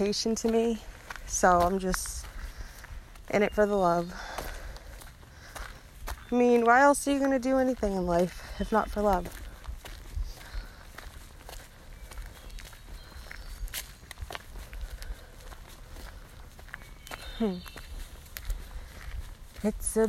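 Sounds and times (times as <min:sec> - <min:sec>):
speech: 0:00.0 - 0:02.3, 0:03.3 - 0:04.3, 0:06.3 - 0:09.4, 0:17.4 - 0:17.8, 0:19.6 - 0:20.0
footsteps crunching on a woodland hiking trail: 0:00.0 - 0:20.0.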